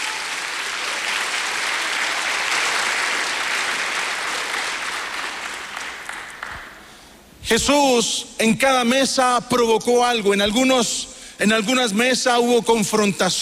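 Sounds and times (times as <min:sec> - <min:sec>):
audience applauding: 0:00.0 - 0:06.8
speech: 0:07.5 - 0:13.4.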